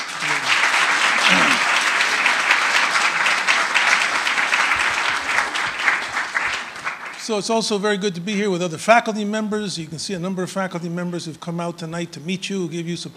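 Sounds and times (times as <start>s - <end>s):
audience applause: 0.0s - 7.4s
speech: 7.3s - 13.1s.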